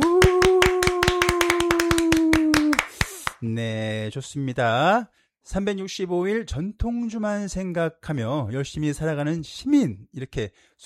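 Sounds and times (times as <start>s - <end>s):
hands clapping applause: 0.0s - 3.4s
speech: 3.4s - 10.8s.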